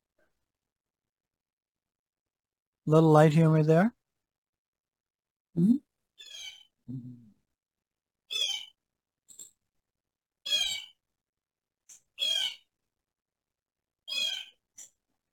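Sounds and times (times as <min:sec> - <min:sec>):
speech: 0:02.9 - 0:04.0, 0:05.6 - 0:05.8, 0:06.9 - 0:07.2
bird chirping indoors: 0:05.6 - 0:06.7, 0:08.3 - 0:08.7, 0:10.5 - 0:11.0, 0:12.2 - 0:12.7, 0:14.1 - 0:14.6.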